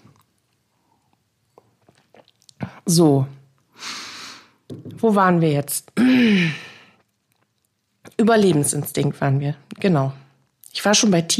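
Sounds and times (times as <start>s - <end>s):
person drinking a sip of water: 0.0s - 2.8s, 6.5s - 8.2s
speech: 2.8s - 3.4s, 5.0s - 6.6s, 8.3s - 10.2s, 10.8s - 11.3s.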